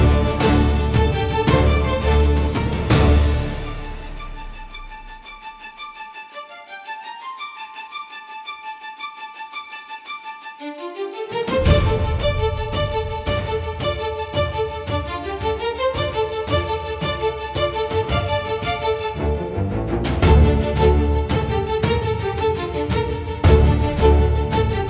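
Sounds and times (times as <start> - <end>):
Japanese style cinematic battle music: 0.0 - 5.7, 11.4 - 24.8.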